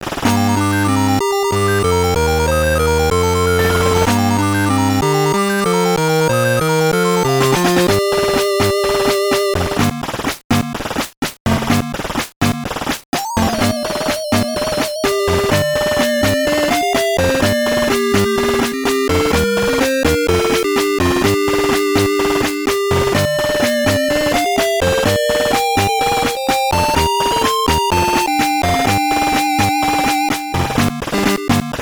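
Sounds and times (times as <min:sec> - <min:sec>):
WonderSwan Color background game music: 0:00.2 - 0:10.8, 0:11.5 - 0:31.8.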